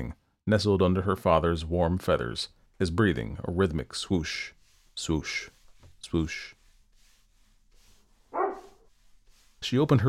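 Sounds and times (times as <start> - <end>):
speech: 0.0 - 6.6, 9.6 - 10.0
dog barking: 8.3 - 8.9
dog whining: 8.4 - 8.8.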